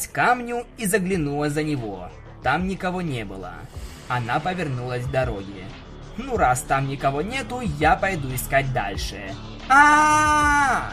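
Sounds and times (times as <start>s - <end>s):
speech: 0.0s - 10.9s
woman screaming: 9.7s - 10.9s.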